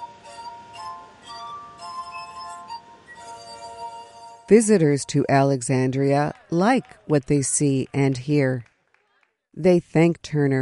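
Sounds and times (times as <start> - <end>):
glass harp played by fingers running over the tops of the glasses: 0.0 - 4.5
speech: 4.5 - 8.7, 9.6 - 10.5.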